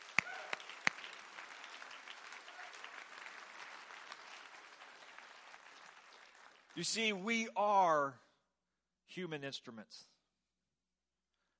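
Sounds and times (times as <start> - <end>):
audience clapping hands: 0.0 - 7.5
speech: 6.8 - 8.2, 9.2 - 10.1.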